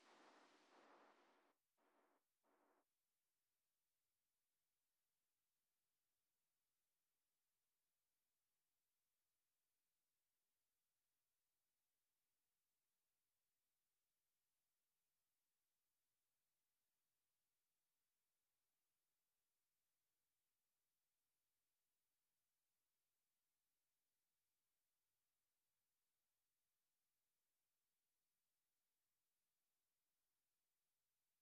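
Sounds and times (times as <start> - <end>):
noises: 0.0 - 2.8.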